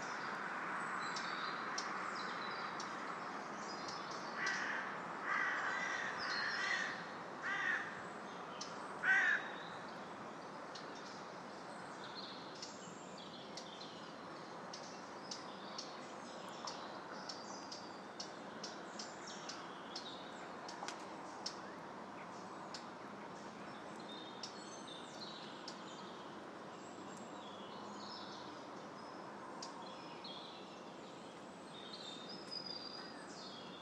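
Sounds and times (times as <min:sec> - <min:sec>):
birds: 0:00.0 - 0:33.8
wind: 0:00.0 - 0:33.8.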